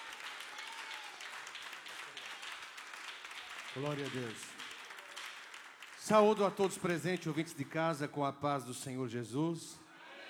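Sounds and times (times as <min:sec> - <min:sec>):
church audience applause: 0:00.0 - 0:07.3
speech: 0:03.8 - 0:04.5, 0:06.1 - 0:09.8.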